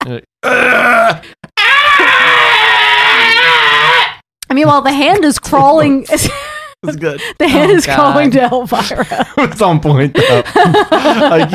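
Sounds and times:
speech: 0.0 - 1.5, 4.5 - 11.5
person imitating Godzilla's roar: 0.4 - 4.2
laughter: 7.4 - 11.5.

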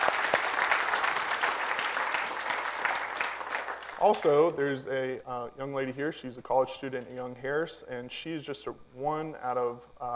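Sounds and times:
audience applause: 0.0 - 4.4
speech: 4.0 - 10.1.

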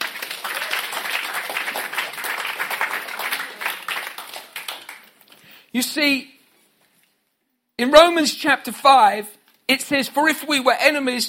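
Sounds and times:
audience applause in a church service: 0.0 - 5.3
speech: 5.8 - 6.3, 7.8 - 11.2.

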